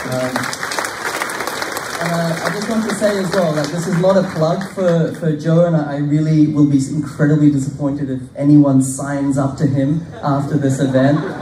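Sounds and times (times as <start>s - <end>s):
audience applause: 0.0s - 5.2s
speech: 0.1s - 0.6s, 2.0s - 11.3s
laughter: 9.8s - 11.3s.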